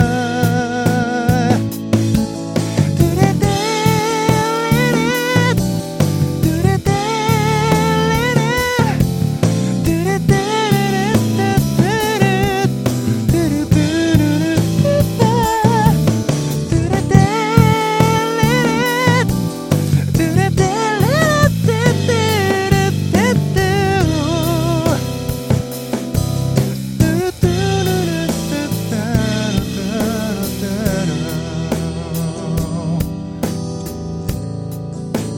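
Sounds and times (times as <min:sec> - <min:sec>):
bass: 0:00.0 - 0:35.3.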